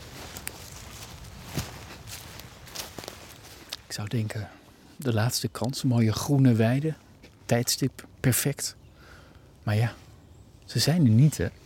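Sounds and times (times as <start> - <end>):
footsteps walking outdoors on a green meadow: 0.0 - 4.0
speech: 3.9 - 8.8, 9.6 - 10.0, 10.7 - 11.6.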